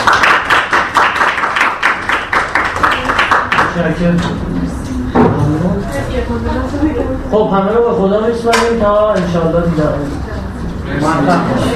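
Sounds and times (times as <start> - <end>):
audience clapping: 0.0 - 4.0
speech: 3.8 - 4.9, 6.0 - 10.3, 10.9 - 11.7.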